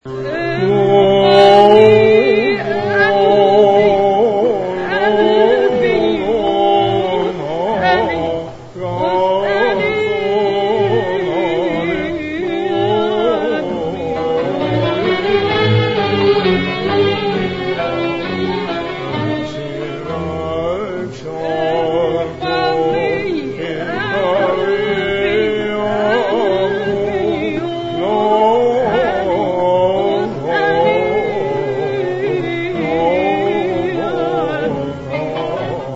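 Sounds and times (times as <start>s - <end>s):
Arabic logon sound: 0.0s - 35.9s.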